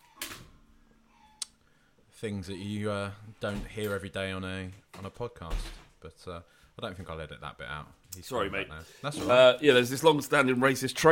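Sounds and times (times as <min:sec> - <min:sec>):
speech: 0:02.2 - 0:11.1
door being closed: 0:05.4 - 0:06.0.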